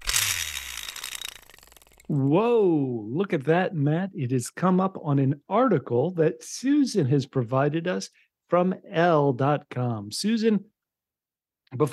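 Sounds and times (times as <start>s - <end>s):
spinning wheel of topics: 0.0s - 2.1s
speech: 2.1s - 10.7s, 11.7s - 11.9s.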